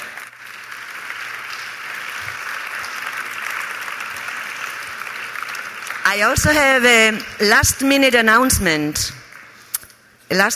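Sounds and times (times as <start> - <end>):
audience applause: 0.0 - 7.6
speech: 6.1 - 9.2, 10.3 - 10.5.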